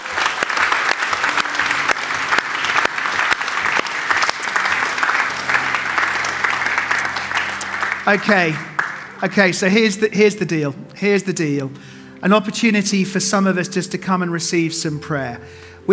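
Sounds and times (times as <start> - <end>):
audience applause: 0.0 - 9.7
speech: 8.1 - 15.9.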